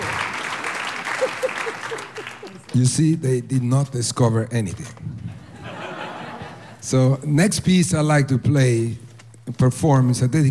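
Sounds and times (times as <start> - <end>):
laughter: 0.0 - 2.9, 5.2 - 6.8
audience applause: 0.0 - 3.0
speech: 1.2 - 5.1, 6.8 - 10.5.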